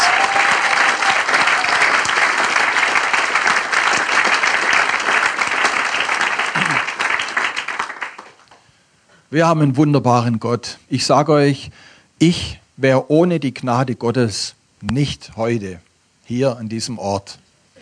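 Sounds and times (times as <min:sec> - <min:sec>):
strong audience applause: 0:00.0 - 0:08.6
speech: 0:09.3 - 0:17.4.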